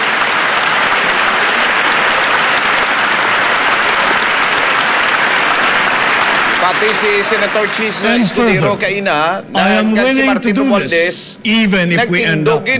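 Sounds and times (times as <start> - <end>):
applause: 0.0 - 9.0
laughter: 0.0 - 12.7
speech: 6.7 - 12.7.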